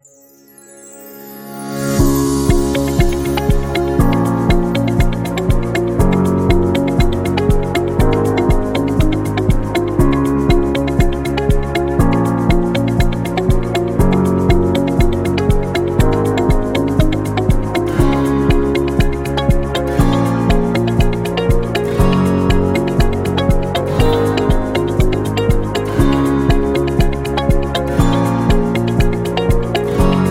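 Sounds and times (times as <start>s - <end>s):
corporate documentary music: 1.8s - 30.2s.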